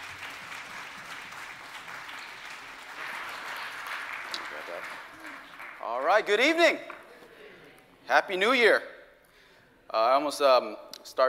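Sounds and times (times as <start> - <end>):
church congregation applause welcoming a guest preacher and his family: 0.0 - 7.1
speech: 4.7 - 6.9, 8.1 - 8.9, 9.9 - 11.2.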